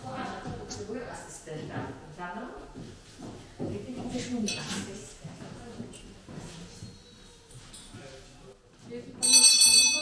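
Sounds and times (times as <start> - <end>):
shuffling: 0.0 - 9.4
speech: 4.2 - 4.9
school bell ringing to mark a lesson: 9.2 - 10.0.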